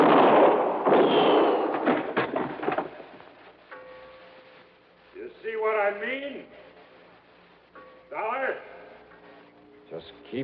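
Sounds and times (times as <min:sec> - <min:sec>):
gunshots from a gun: 0:00.0 - 0:02.9.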